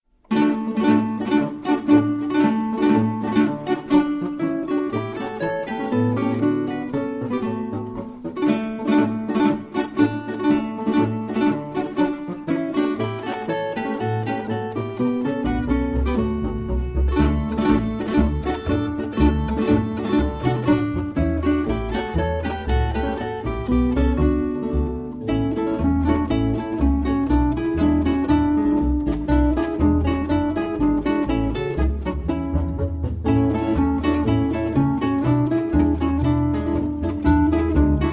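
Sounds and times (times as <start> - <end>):
polka music: 0.3 - 38.1.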